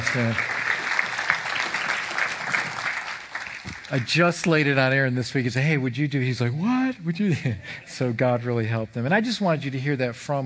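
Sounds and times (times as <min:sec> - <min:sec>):
audience applauding: 0:00.0 - 0:04.7
speech: 0:00.1 - 0:00.5, 0:03.9 - 0:10.4
laughter: 0:07.1 - 0:08.4.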